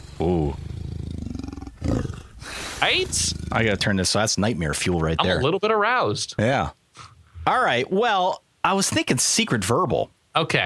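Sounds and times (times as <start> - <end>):
leopard roaring: 0.2 - 3.9
speech: 2.8 - 6.8, 7.4 - 10.6.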